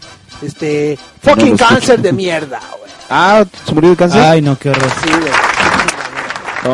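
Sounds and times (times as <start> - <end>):
speech: 0.4 - 5.5
small group clapping: 4.6 - 6.7.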